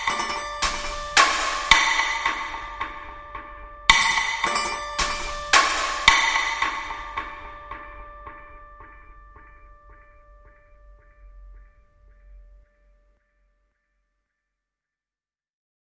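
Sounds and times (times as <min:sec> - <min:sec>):
impact hits: 0:00.0 - 0:09.9.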